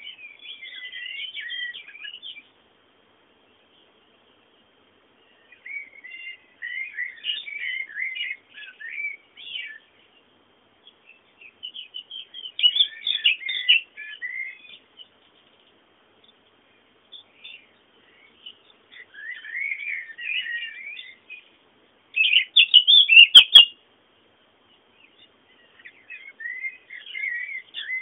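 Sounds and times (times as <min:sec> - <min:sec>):
birds chirping: 0:00.0 - 0:28.0
quiet hiss: 0:00.0 - 0:28.0.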